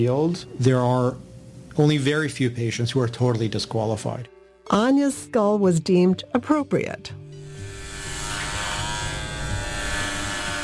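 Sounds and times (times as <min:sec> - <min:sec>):
speech: 0:00.0 - 0:07.2
electric razor shaving off shoulder-length brown hair: 0:07.4 - 0:10.6.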